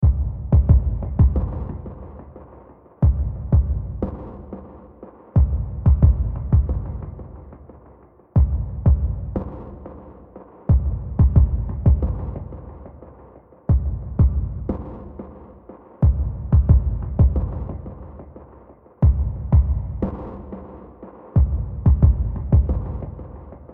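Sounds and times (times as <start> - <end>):
deep beat: 0.0 - 2.4, 3.0 - 4.7, 5.4 - 7.6, 8.4 - 10.0, 10.7 - 13.0, 13.7 - 15.4, 16.0 - 18.4, 19.0 - 20.7, 21.4 - 23.7.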